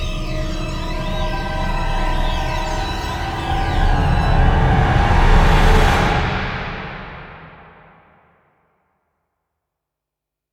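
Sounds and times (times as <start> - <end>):
rising sound: 0.2 - 8.2.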